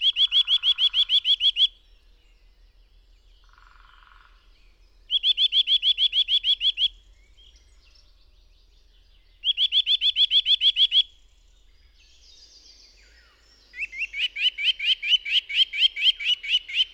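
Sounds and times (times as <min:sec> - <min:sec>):
Eurasian nuthatch rising whistled calls in forest: 0:00.0 - 0:01.8, 0:05.1 - 0:07.6, 0:09.4 - 0:11.1, 0:13.1 - 0:16.9.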